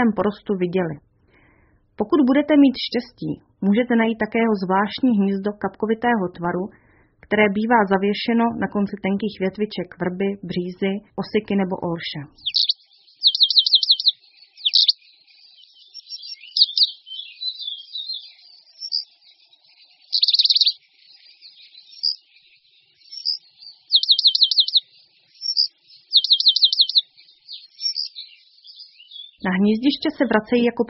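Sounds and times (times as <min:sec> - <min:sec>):
speech: 0:00.0 - 0:01.1, 0:02.0 - 0:12.7, 0:29.6 - 0:30.8
Eurasian penduline tit trilling and twittering: 0:12.3 - 0:30.8.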